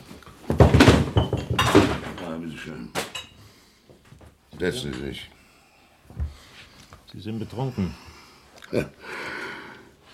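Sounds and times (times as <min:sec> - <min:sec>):
wooden chair being cleared and set down: 0:00.4 - 0:02.4
speech: 0:04.6 - 0:05.4, 0:07.2 - 0:08.1, 0:08.7 - 0:09.3.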